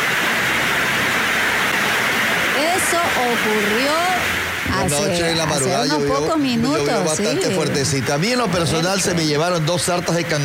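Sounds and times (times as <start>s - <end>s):
heavy rain drumming on a roof: 0.0s - 10.4s
speech: 3.2s - 10.4s.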